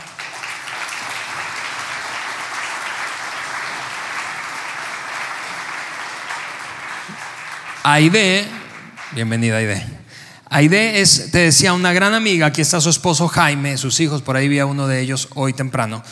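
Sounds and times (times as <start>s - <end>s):
audience applause: 0.0s - 9.8s
speech: 7.9s - 8.6s, 9.2s - 16.1s.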